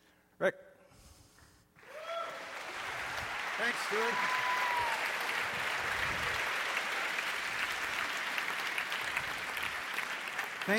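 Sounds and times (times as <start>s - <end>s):
speech: 0.4s - 0.7s, 3.6s - 4.5s
audience applause: 1.8s - 10.7s.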